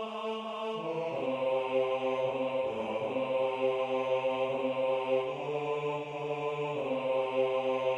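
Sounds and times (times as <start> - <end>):
baritone voice singing: 0.2 - 7.9.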